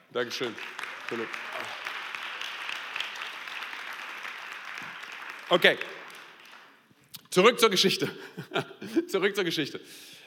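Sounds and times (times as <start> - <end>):
speech: 0.2 - 1.8, 5.5 - 6.0, 7.4 - 10.2
audience applause: 0.2 - 6.8
laughter: 8.1 - 9.3.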